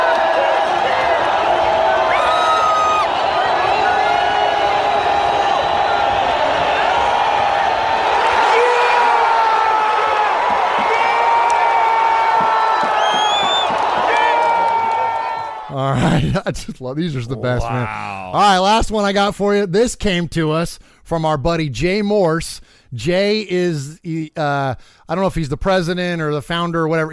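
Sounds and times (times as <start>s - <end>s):
whoops: 0.0s - 7.2s, 8.2s - 15.7s
stadium crowd cheering blocked field goal: 0.0s - 15.8s
piercing whistles: 12.8s - 13.8s
speech: 16.4s - 27.1s.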